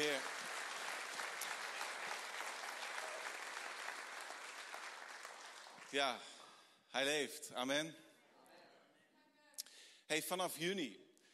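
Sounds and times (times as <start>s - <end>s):
audience applause: 0.0s - 6.6s
speech: 5.9s - 6.3s, 6.9s - 8.1s, 10.1s - 11.0s.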